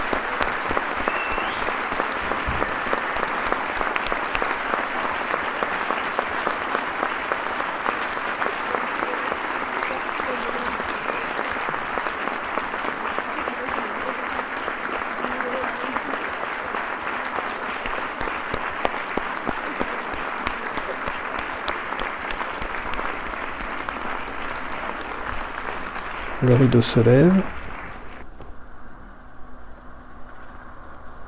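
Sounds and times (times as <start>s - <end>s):
audience applause: 0.0s - 28.3s
speech: 26.5s - 27.6s.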